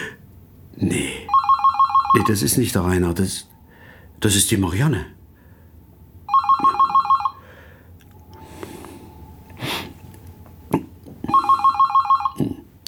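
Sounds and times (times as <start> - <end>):
speech: 0.8 - 1.2, 2.2 - 3.6, 4.2 - 5.2
telephone ringing: 1.3 - 2.4, 6.3 - 7.4, 11.3 - 12.4
soft breathing: 3.6 - 4.2, 5.3 - 5.8, 7.4 - 10.2.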